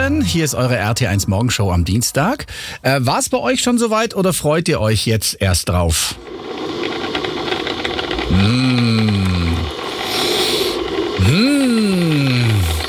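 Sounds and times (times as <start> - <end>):
speech: 0.1 - 7.0, 8.3 - 9.4
coffee machine running: 6.0 - 12.8.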